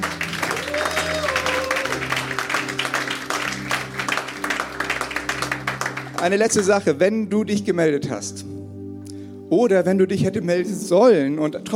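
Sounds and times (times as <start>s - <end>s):
crowd applauding: 0.0s - 6.8s
soft keyboard chords: 0.0s - 11.7s
speech: 6.2s - 8.5s, 9.5s - 11.7s.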